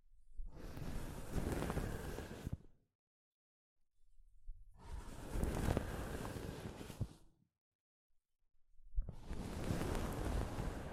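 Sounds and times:
soft fabric brushing against a microphone: 0.6s - 2.6s, 4.8s - 7.2s, 9.2s - 10.9s.

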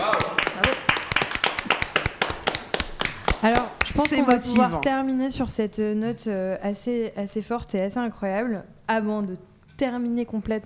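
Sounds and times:
audience applauding: 0.0s - 4.9s
speech: 3.4s - 10.6s.

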